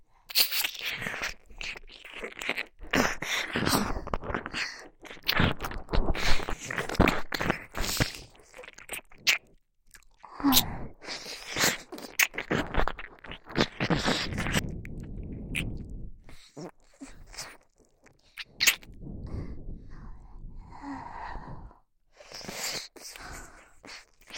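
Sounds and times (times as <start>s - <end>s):
pampering ear licking: 0.3s - 19.0s.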